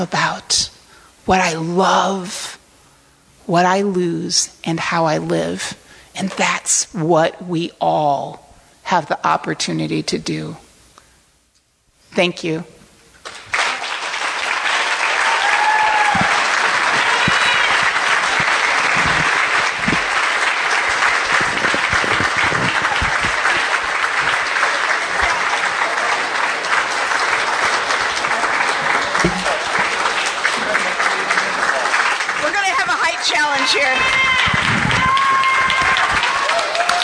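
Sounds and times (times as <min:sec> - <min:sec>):
speech: 0:00.0 - 0:00.7, 0:01.3 - 0:02.6, 0:03.5 - 0:10.6, 0:12.1 - 0:12.8
standing ovation applause after a banquet speech: 0:13.2 - 0:37.0.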